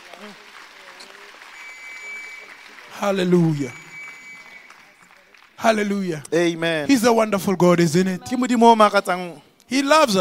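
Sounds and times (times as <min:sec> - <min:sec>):
audience clapping: 0:00.0 - 0:06.6
speech: 0:03.0 - 0:03.8, 0:05.6 - 0:10.1.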